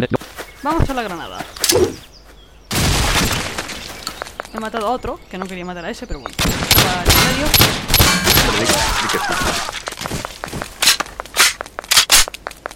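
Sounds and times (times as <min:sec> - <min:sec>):
speech: 0:00.0 - 0:02.0, 0:04.6 - 0:10.1
video game pistol reloading: 0:10.8 - 0:12.4.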